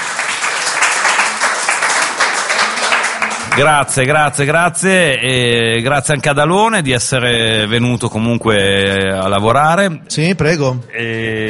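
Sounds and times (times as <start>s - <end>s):
studio audience applause: 0.0s - 4.2s
speech: 3.6s - 11.4s.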